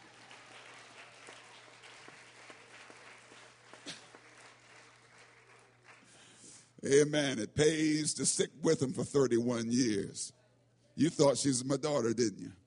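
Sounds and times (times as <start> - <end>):
audience clapping: 0.0 - 6.5
speech: 6.8 - 10.4, 11.0 - 12.6.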